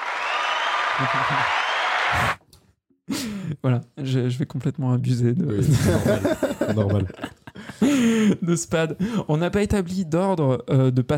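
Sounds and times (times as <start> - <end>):
audience applause: 0.0 - 2.4
laughter: 0.8 - 1.7, 5.5 - 8.5
speech: 1.0 - 2.4, 3.1 - 11.1.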